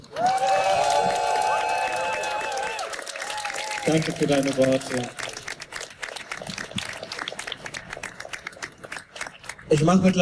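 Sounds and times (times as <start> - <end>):
cheering and whoops: 0.0 - 4.0
audience clapping: 0.0 - 10.1
speech: 3.9 - 5.3, 9.7 - 10.1.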